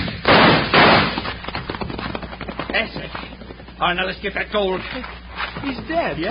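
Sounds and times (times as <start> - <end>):
gunshots during a western holdup: 0.0 - 1.8
speech: 2.8 - 6.2.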